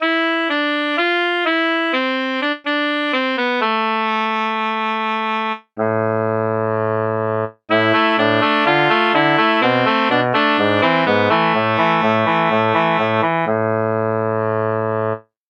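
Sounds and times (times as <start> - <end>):
soprano sax: 0.0 - 15.3.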